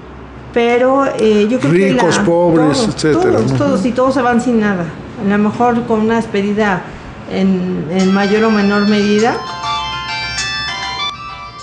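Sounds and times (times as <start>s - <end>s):
speech: 0.6s - 9.5s
mobile phone ringing with a melodic electronic ringtone: 8.0s - 11.6s.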